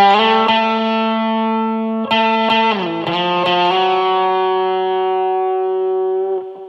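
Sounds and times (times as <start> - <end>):
clean electric guitar through Tech21 Fly Rig 5 SansAmp with reverb playing ballad-style notes: 0.0 - 6.6.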